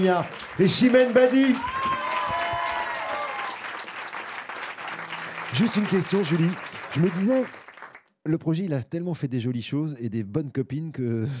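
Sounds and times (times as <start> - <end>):
speech: 0.0 - 1.9, 5.5 - 7.6, 8.2 - 11.3
audience applause: 0.0 - 8.1.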